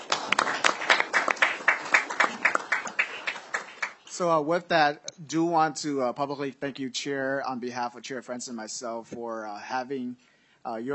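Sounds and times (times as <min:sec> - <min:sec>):
round of applause from audience: 0:00.0 - 0:04.2
speech: 0:04.2 - 0:10.9.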